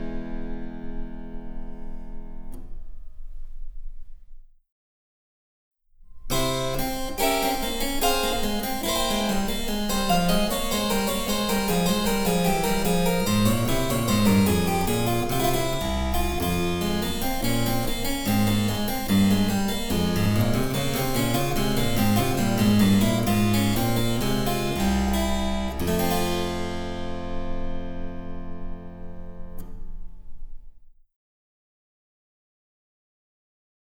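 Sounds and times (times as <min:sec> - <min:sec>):
harpsichord: 0:06.2 - 0:30.1.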